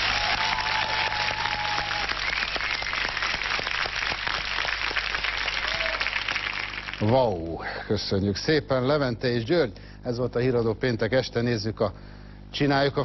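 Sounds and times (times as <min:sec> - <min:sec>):
big round of applause: 0:00.0 - 0:07.4
speech: 0:07.0 - 0:13.0.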